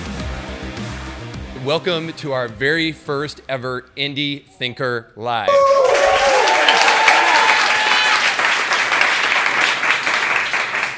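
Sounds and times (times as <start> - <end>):
speech: 1.6 - 6.0
live studio audience applauding: 5.5 - 10.9.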